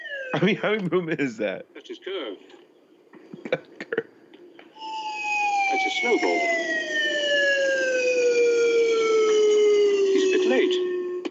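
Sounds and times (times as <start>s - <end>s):
speech: 0.4s - 2.6s, 3.5s - 3.8s, 6.0s - 7.2s
slide whistle blown into a microphone: 4.8s - 11.3s.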